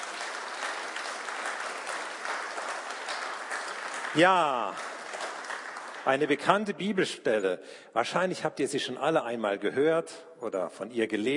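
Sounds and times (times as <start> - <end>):
audience applause: 0.0 - 6.5
speech: 4.1 - 4.9, 6.0 - 11.3.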